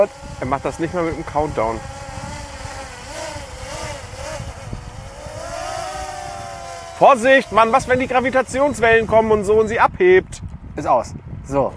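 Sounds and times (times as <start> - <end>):
speech: 0.0 - 2.0, 7.0 - 11.7
drone propellers buzzing as it lands: 0.0 - 10.0.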